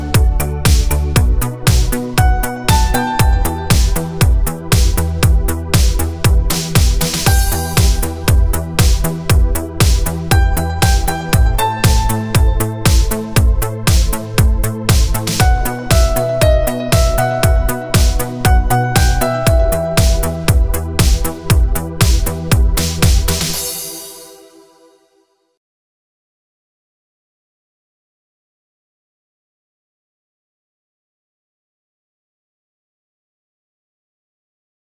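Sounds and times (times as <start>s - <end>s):
80s Italo disco remix: 0.0s - 24.4s.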